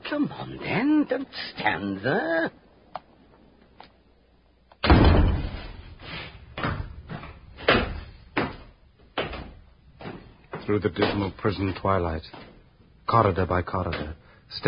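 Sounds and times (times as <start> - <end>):
speech: 0.1 - 2.6, 10.7 - 12.5, 13.1 - 14.6
heavy prison door slamming: 4.8 - 6.0
metallic bangs and clanks: 4.8 - 8.5.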